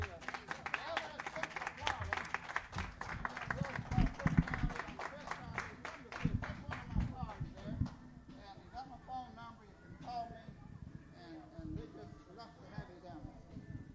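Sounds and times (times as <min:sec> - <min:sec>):
audience clapping: 0:00.0 - 0:07.2
voices murmuring: 0:00.0 - 0:13.9.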